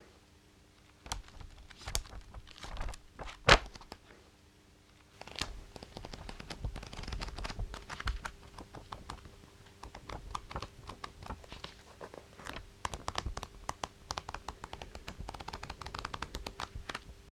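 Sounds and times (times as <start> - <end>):
pages flipping: 0.8 - 4.1, 4.9 - 17.2.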